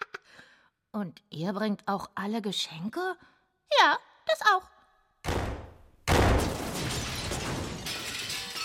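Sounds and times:
speech: 0.9 - 4.8
door slamming: 5.2 - 7.9.

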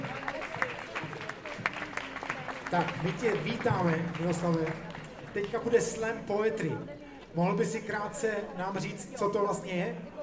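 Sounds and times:
audience applause: 0.0 - 6.0
speech: 2.7 - 10.1.

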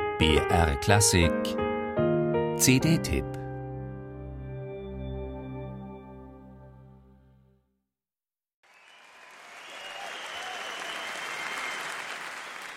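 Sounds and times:
speech: 0.2 - 1.6, 2.6 - 3.4
concert hall audience applause and cheering: 8.7 - 12.7.

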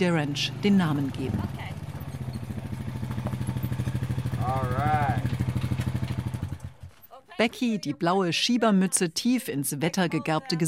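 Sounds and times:
speech: 0.0 - 1.7, 7.4 - 10.6
quad bike rattling onto a dusty yard: 0.0 - 7.7.

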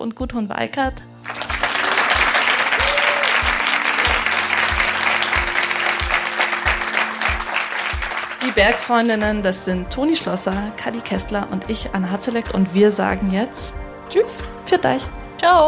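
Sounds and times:
speech: 0.0 - 1.4, 8.4 - 15.6
audience applause: 1.2 - 8.9
low thumping beat: 3.4 - 12.6.

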